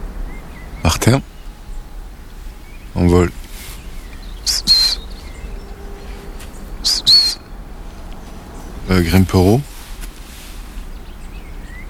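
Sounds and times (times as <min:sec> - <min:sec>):
long-tailed tit trill: 0:00.0 - 0:11.8
speech: 0:01.0 - 0:01.4, 0:03.0 - 0:03.4, 0:08.9 - 0:09.7.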